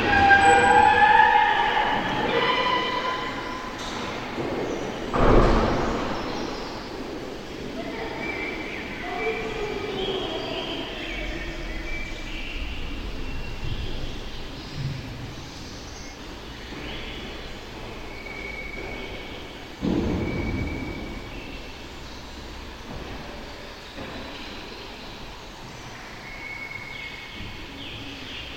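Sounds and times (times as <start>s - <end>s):
large central echoey courtyard ambience: 0.0s - 28.5s.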